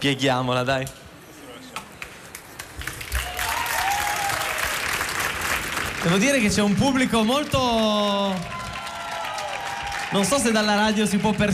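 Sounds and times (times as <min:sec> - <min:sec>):
speech: 0:00.0 - 0:01.0, 0:06.0 - 0:08.6, 0:10.1 - 0:11.5
audience applause: 0:02.3 - 0:11.5.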